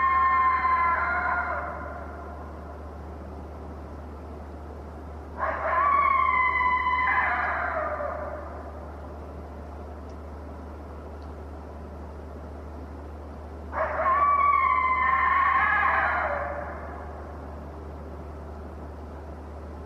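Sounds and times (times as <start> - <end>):
lone coyote howling: 0.0 - 2.7, 5.4 - 9.0, 13.7 - 17.6.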